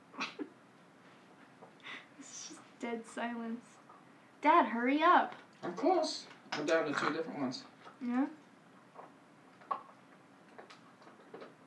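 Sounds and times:
speech: 2.8 - 3.8, 4.4 - 8.4
dog chewing on a bone: 8.8 - 11.6.

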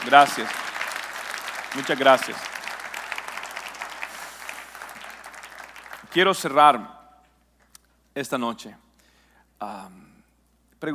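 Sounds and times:
speech: 0.0 - 0.6, 1.7 - 2.5, 6.1 - 7.0, 8.2 - 8.8, 9.6 - 10.1, 10.8 - 10.9
audience applause: 0.0 - 6.6.

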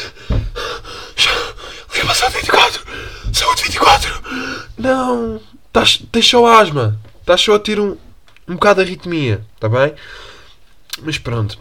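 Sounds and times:
person panting, struggling to breathe: 0.0 - 2.0, 2.8 - 3.4, 4.1 - 4.8
speech: 4.8 - 10.2, 11.0 - 11.5.

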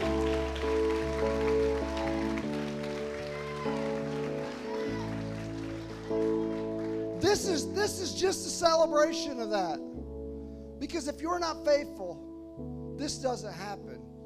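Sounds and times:
audience clapping: 0.0 - 7.6
sustained keyboard or organ chords: 0.0 - 14.2
speech: 7.4 - 10.0, 10.9 - 14.1.

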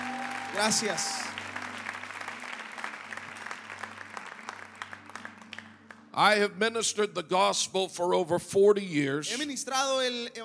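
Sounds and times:
applause for the praise and worship team at a church conference: 0.0 - 6.4
speech: 0.6 - 1.4, 6.2 - 10.4.

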